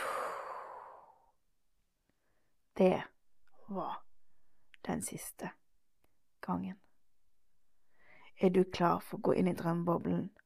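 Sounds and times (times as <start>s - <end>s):
person breathing out deeply: 0.0s - 1.2s
speech: 2.8s - 3.1s, 3.7s - 4.1s, 4.8s - 5.6s, 6.4s - 6.8s, 8.4s - 10.4s.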